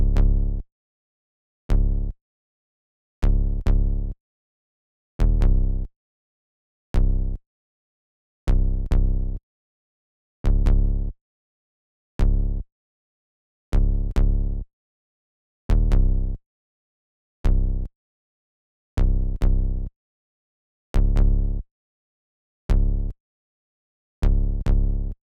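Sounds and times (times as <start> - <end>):
bass: 0.0 - 0.7, 1.7 - 2.2, 3.2 - 4.2, 5.2 - 5.9, 6.9 - 7.4, 8.5 - 9.4, 10.4 - 11.2, 12.2 - 12.7, 13.7 - 14.7, 15.7 - 16.4, 17.4 - 18.0, 19.0 - 19.9, 20.9 - 21.7, 22.7 - 23.2, 24.2 - 25.2.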